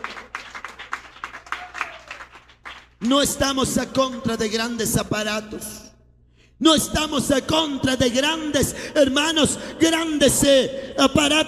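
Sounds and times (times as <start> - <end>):
church congregation clapping during an afternoon service: 0.0 - 3.3
speech: 3.0 - 5.9, 6.6 - 11.4.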